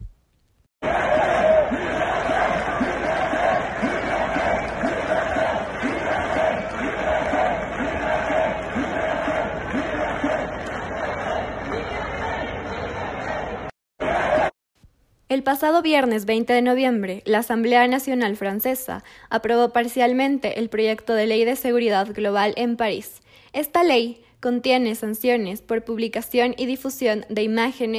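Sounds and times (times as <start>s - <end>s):
protest crowd shouting freedom in French: 0.8s - 14.5s
speech: 15.4s - 27.9s.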